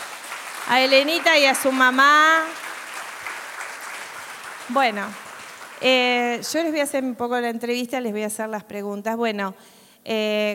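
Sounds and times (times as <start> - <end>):
audience applause: 0.0 - 6.6
speech: 0.7 - 2.6, 4.7 - 5.2, 5.8 - 10.5.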